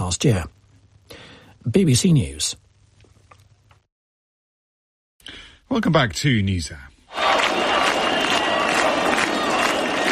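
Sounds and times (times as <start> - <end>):
speech: 0.1 - 2.6, 5.7 - 6.9
protesters shouting: 7.1 - 10.1
street protest crowd in Albania: 7.1 - 10.1.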